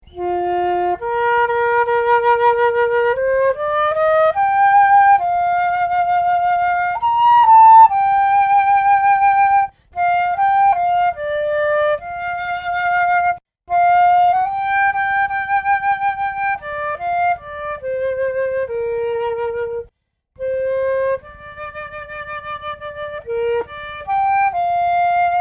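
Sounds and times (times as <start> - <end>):
flute: 0.0 - 25.3.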